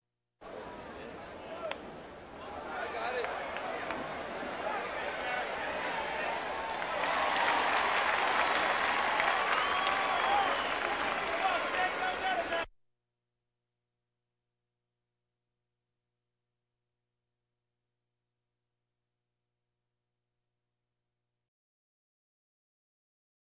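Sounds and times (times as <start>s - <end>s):
crowds: 0.4s - 12.7s.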